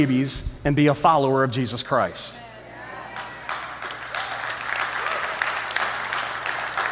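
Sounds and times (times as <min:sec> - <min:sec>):
speech: 0:00.0 - 0:02.4
audience applauding: 0:03.1 - 0:06.9.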